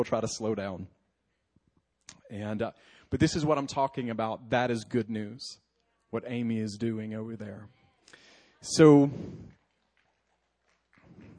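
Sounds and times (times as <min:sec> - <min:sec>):
speech: 0:00.0 - 0:01.0, 0:02.3 - 0:09.6
sharp hand claps: 0:09.4 - 0:11.3.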